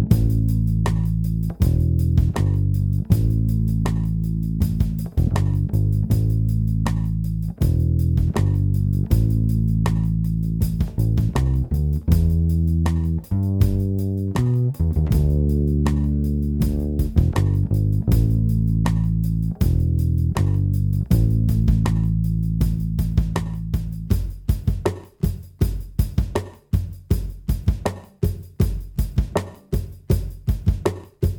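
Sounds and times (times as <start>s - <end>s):
drum and bass music: 0.1s - 31.3s.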